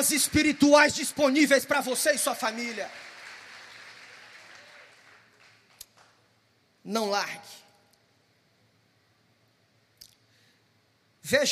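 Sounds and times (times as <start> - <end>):
speech: 0.0 - 3.1, 6.8 - 7.6, 11.3 - 11.5
audience applause: 0.0 - 6.2.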